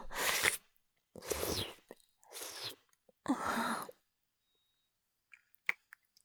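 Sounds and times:
deep kissing: 0.1s - 0.6s, 1.2s - 2.8s, 5.6s - 6.0s.

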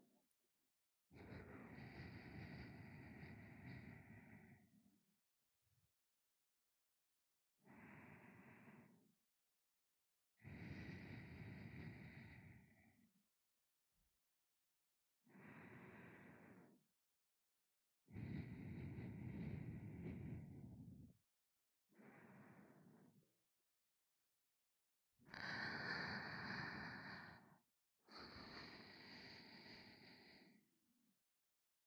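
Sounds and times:
sleeping breathing: 1.2s - 4.7s, 7.7s - 9.0s, 10.4s - 12.9s, 15.4s - 16.7s, 18.2s - 21.0s, 22.0s - 23.2s, 25.3s - 30.6s.

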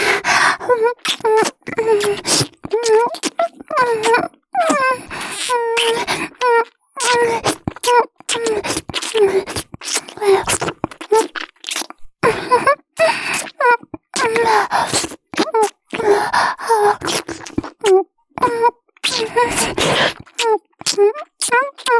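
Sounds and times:
ASMR lip kissing sounds: 0.1s - 12.0s, 13.0s - 13.6s, 14.1s - 21.9s.

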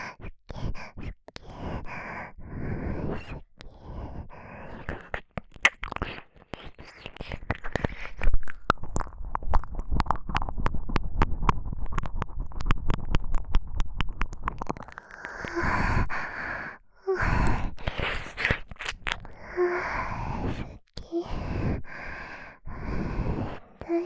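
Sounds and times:
intimate whispering: 0.0s - 8.3s, 14.5s - 24.0s
ear licking: 3.0s - 24.0s.

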